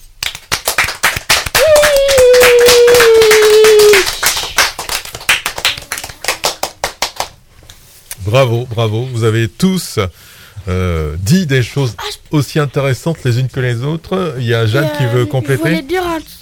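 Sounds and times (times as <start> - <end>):
hands clapping: 0.0 - 7.8
speech: 8.3 - 16.3.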